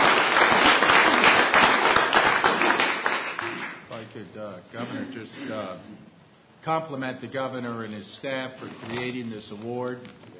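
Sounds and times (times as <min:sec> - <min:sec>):
crowd applauding: 0:00.0 - 0:03.9
speech: 0:04.6 - 0:10.3.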